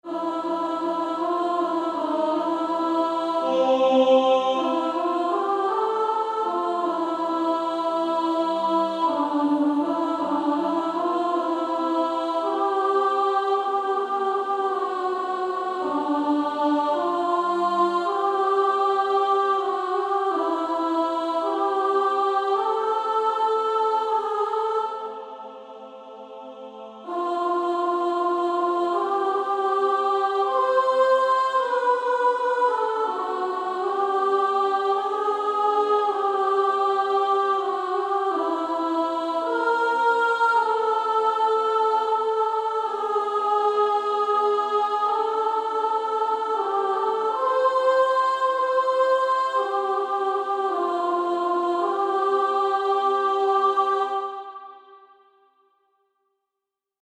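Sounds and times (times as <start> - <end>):
female choir soprano section singing: 0.0 - 55.4.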